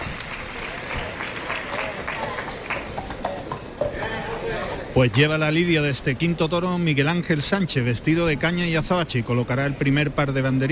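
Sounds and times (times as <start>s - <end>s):
bullring crowd ovation: 0.0s - 4.9s
speech: 5.0s - 10.6s.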